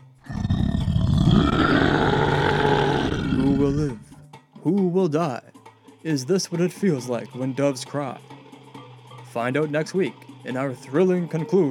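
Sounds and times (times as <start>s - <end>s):
deep rumbling monster roar as it emerges: 0.2s - 4.0s
speech: 4.7s - 8.3s, 9.3s - 11.6s.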